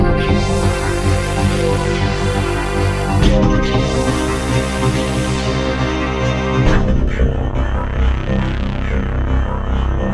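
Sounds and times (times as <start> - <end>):
V-Synth synthesizer loop: 0.0 - 10.0.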